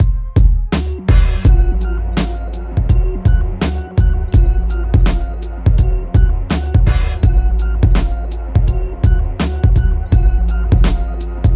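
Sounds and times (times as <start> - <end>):
hip hop and R&B drum loops: 0.0 - 11.5.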